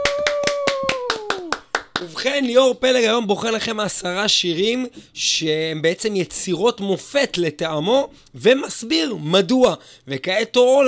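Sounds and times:
audience clapping hands: 0:00.0 - 0:02.6
speech: 0:02.0 - 0:10.8.

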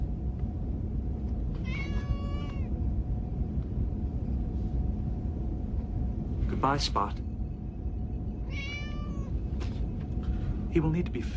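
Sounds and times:
low hum: 0:00.0 - 0:11.3
cat meowing: 0:01.6 - 0:02.7, 0:08.4 - 0:09.4
speech: 0:06.6 - 0:07.3, 0:10.8 - 0:11.3.

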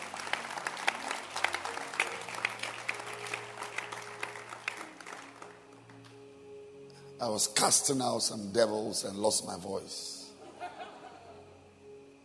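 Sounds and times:
audience clapping hands: 0:00.0 - 0:06.2
speech: 0:07.2 - 0:10.1
laughter: 0:10.4 - 0:11.5.

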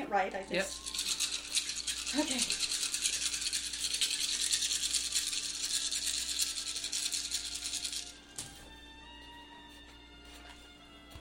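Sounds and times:
speech: 0:00.1 - 0:00.9, 0:02.1 - 0:02.7
handful of dice rattling: 0:00.5 - 0:08.2.

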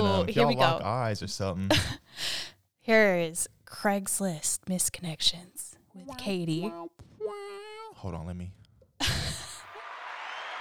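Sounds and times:
speech: 0:00.2 - 0:07.4, 0:08.0 - 0:09.2
applause: 0:09.7 - 0:10.6.

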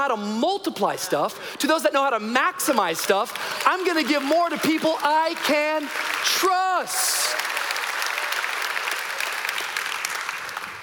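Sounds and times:
speech: 0:00.0 - 0:07.5
audience applause: 0:03.1 - 0:10.8.

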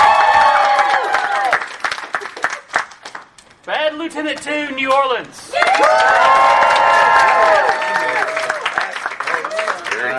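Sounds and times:
crowd cheering and whooping: 0:00.0 - 0:01.8, 0:05.5 - 0:10.1
applause: 0:00.0 - 0:03.3, 0:05.5 - 0:10.1
speech: 0:04.1 - 0:06.6.

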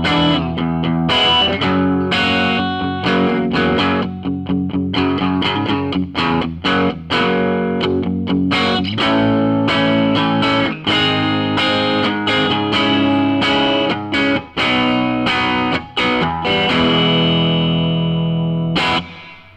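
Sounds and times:
hollow-body electric guitar chiming on both pickups: 0:00.0 - 0:19.5.

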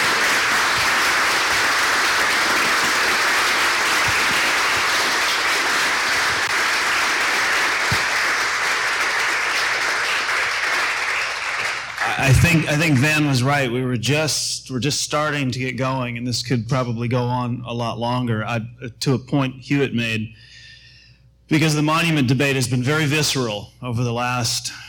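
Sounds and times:
audience applause: 0:00.0 - 0:13.1
speech: 0:12.4 - 0:20.5, 0:21.5 - 0:24.8.

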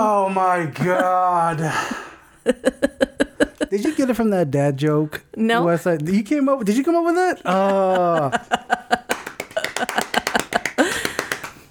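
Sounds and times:
speech: 0:00.0 - 0:03.1, 0:03.7 - 0:08.8
laughter: 0:00.1 - 0:04.4, 0:06.6 - 0:11.6
golf clap: 0:07.5 - 0:11.6.

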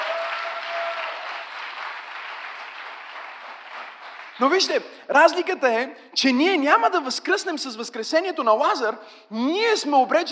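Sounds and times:
audience applause: 0:00.0 - 0:04.7
speech: 0:04.4 - 0:10.3.

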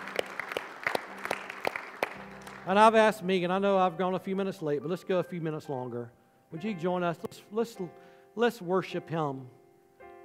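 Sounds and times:
audience clapping: 0:00.0 - 0:03.1
speech: 0:02.6 - 0:09.6.

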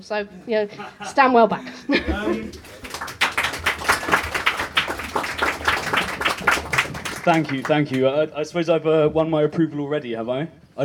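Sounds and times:
speech: 0:00.0 - 0:02.8, 0:07.2 - 0:10.8
laughter: 0:00.7 - 0:03.0
audience applause: 0:02.4 - 0:08.1.

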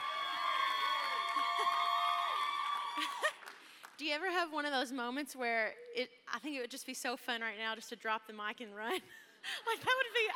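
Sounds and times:
audience cheering and whooping to welcome a speaker: 0:00.0 - 0:03.5
speech: 0:04.0 - 0:10.3.

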